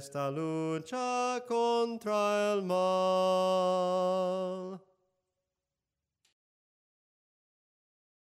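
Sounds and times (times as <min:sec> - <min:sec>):
soprano singing hymns: 0:00.0 - 0:04.8.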